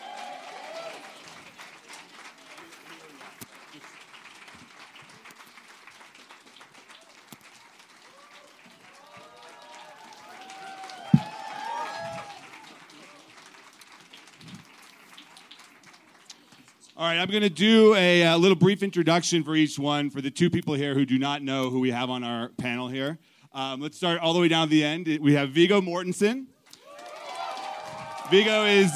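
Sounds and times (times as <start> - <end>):
audience applause: 0.0 - 17.0, 26.7 - 28.9
speech: 17.0 - 26.5, 28.3 - 28.9.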